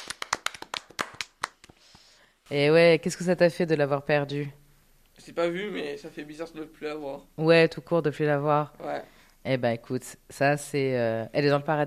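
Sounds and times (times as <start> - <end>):
hand clapping: 0.0 - 2.0
speech: 2.5 - 4.6, 5.2 - 11.8.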